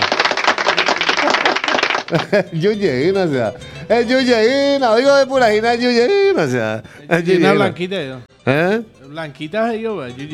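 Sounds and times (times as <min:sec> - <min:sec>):
audience applause for a raffle winner: 0:00.0 - 0:02.5
laughter: 0:00.0 - 0:07.9
speech: 0:02.1 - 0:10.3.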